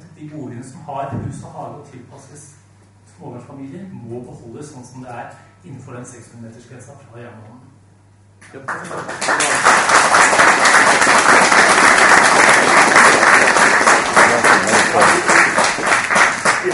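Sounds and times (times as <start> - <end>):
speech: 0.2 - 2.6, 3.2 - 7.7, 8.4 - 9.8
audience applause after a speech: 8.7 - 16.7.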